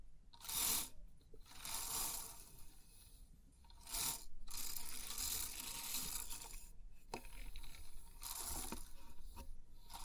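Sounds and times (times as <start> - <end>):
3D pin art toy pins clicking and rattling: 0.4 - 2.6, 3.7 - 8.9.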